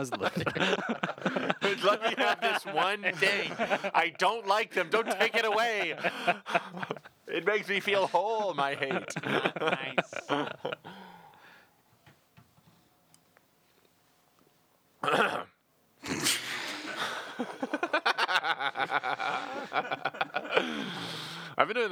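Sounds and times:
speech: 0.0 - 11.0, 15.0 - 15.5
laughter: 0.0 - 11.2, 16.1 - 21.6
aggressive throat clearing into microphone: 15.0 - 16.9.

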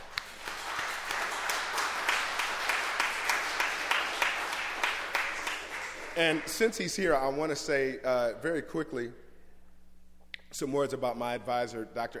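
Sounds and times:
audience applause: 0.0 - 6.6
speech: 6.2 - 9.2, 10.6 - 12.1.

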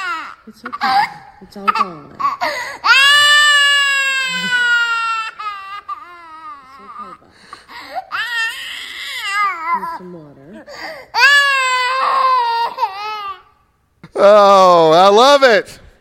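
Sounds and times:
toddler wailing over no more chocolate: 0.0 - 7.2, 8.1 - 10.1, 11.2 - 13.5
speech: 0.5 - 3.0, 4.3 - 4.6, 14.2 - 15.8.

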